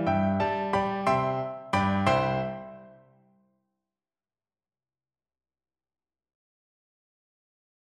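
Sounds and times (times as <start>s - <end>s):
flute playing a Mexican folk tune: 0.2s - 3.0s.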